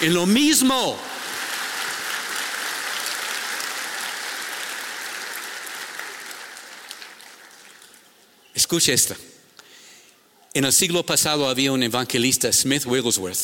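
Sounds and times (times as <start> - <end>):
speech: 0.0 - 1.2, 8.6 - 9.4, 10.6 - 13.4
crowd applauding: 0.0 - 8.3.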